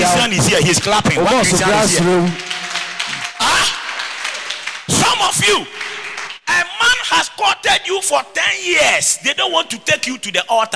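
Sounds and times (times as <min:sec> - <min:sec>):
speech: 0:00.3 - 0:02.5, 0:05.4 - 0:05.8, 0:07.1 - 0:10.7
one person clapping hands: 0:00.8 - 0:06.5.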